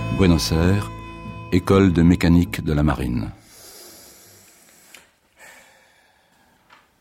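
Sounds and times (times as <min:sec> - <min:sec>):
speech: 0:00.2 - 0:00.9, 0:01.5 - 0:03.4
person breathing: 0:03.4 - 0:06.7.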